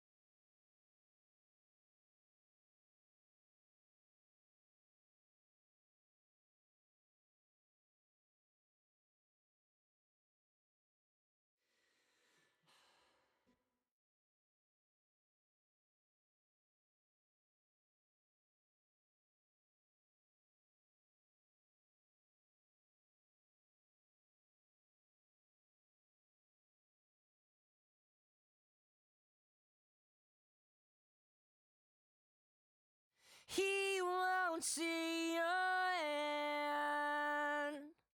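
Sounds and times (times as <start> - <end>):
backing vocals: 33.5 - 37.9.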